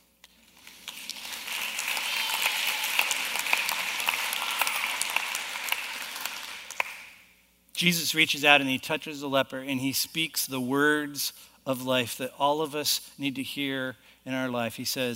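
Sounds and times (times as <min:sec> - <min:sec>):
audience applause: 0:00.4 - 0:07.2
speech: 0:07.8 - 0:15.1.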